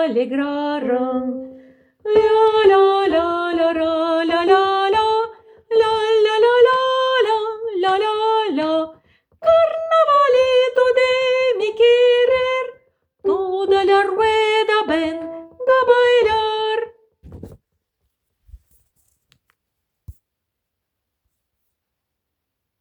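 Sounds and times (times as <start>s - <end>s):
soprano singing carnavalito: 0.0s - 17.0s.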